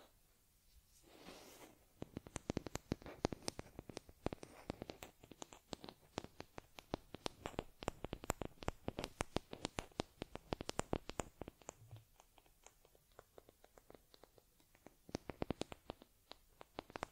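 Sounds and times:
hissy brush stroke: 0:00.7 - 0:01.9
fur combing and massaging on a teddy bear: 0:00.9 - 0:17.1.

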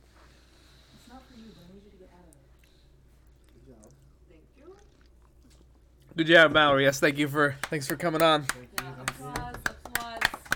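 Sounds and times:
speech: 0:06.2 - 0:09.0
applause: 0:07.6 - 0:10.5.

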